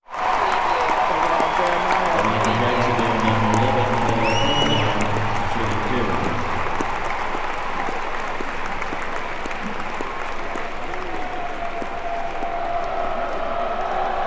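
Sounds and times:
arena crowd applause: 0.0 - 14.2.

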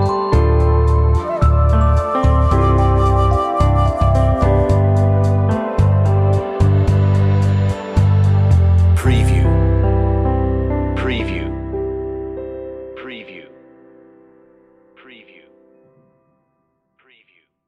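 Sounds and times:
telephone on-hold music: 0.0 - 11.6.

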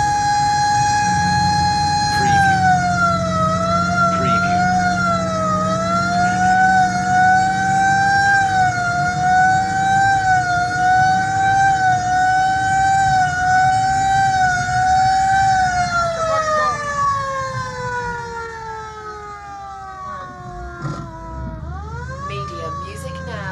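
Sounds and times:
fire engine siren heard onboard: 0.0 - 23.5.

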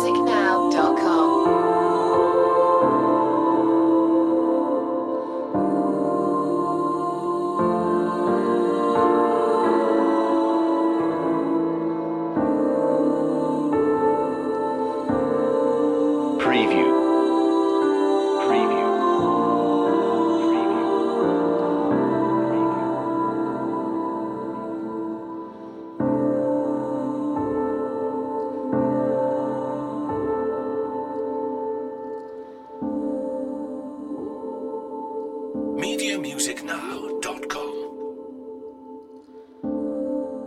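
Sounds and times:
female voices: 0.0 - 1.4
piano: 0.0 - 40.4.

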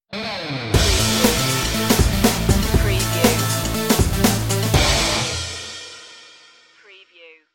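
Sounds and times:
beat drop stinger: 0.8 - 5.4.

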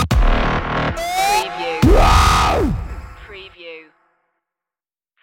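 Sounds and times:
dubstep stinger: 0.2 - 3.4.

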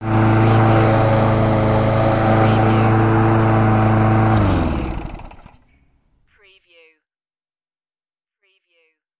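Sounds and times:
lawn mower turning off: 0.0 - 5.7.

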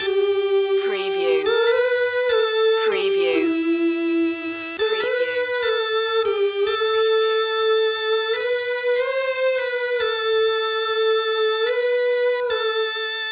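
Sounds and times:
music loop: 0.0 - 13.3.

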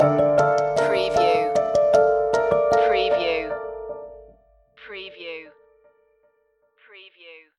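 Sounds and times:
dark and ominous orchestral sinking stinger: 0.0 - 4.4.

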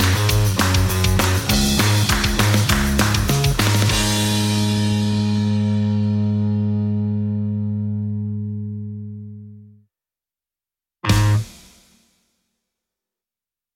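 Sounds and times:
drums: 0.0 - 6.5, 11.0 - 12.2
bass: 0.0 - 9.8, 11.0 - 11.5.

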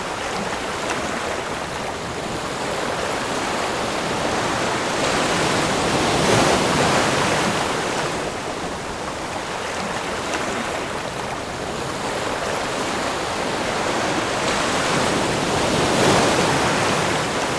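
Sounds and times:
heavy ocean waves: 0.0 - 17.5.

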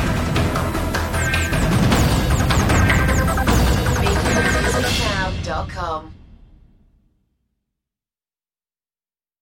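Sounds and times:
synth: 0.0 - 5.5
percussion: 0.0 - 6.7.

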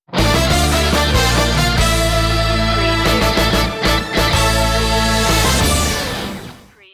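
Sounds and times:
sports jingle: 0.4 - 6.8.

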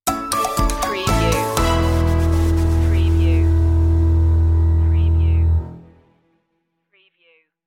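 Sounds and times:
music stinger: 1.1 - 6.2.

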